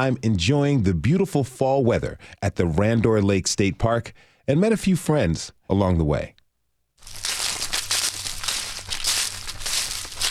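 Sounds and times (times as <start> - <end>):
speech: 0.0 - 6.4
dry fall leaves crunching underfoot: 7.0 - 10.2.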